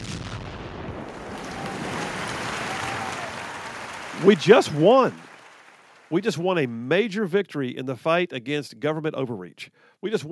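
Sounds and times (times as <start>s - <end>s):
canned applause sound effect: 1.1s - 6.8s
speech: 4.2s - 5.2s, 6.1s - 10.3s.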